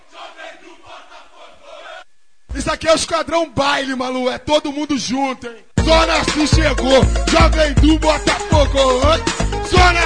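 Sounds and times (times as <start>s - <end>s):
football supporters chanting: 0.0s - 2.1s
speech: 2.6s - 10.0s
funk beat: 5.8s - 10.0s.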